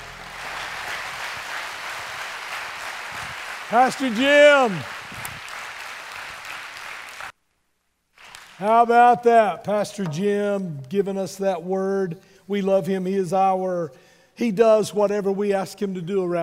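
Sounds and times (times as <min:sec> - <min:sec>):
audience hand clapping: 0:00.0 - 0:07.4, 0:08.2 - 0:08.9
speech: 0:03.7 - 0:05.0, 0:08.6 - 0:16.4.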